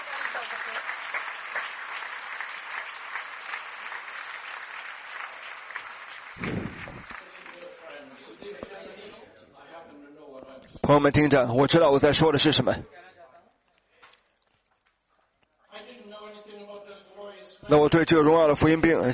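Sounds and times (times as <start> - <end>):
audience applause: 0.0 - 8.6
speech: 10.9 - 13.0, 17.7 - 19.1.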